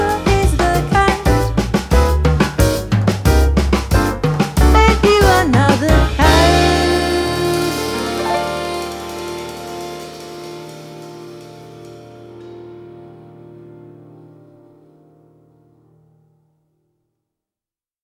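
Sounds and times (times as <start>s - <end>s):
samba music: 0.0s - 13.0s.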